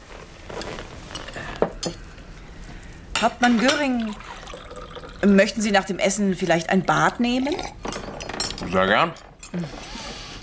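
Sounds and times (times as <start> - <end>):
glasses clinking in a toast: 1.0 - 2.2, 3.2 - 5.3, 6.9 - 10.1
speech: 3.2 - 4.3, 5.2 - 7.8, 8.6 - 9.9.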